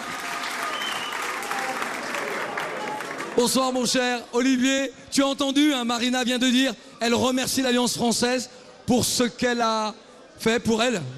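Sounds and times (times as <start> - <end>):
audience applause: 0.0 - 3.6
speech: 3.4 - 11.1.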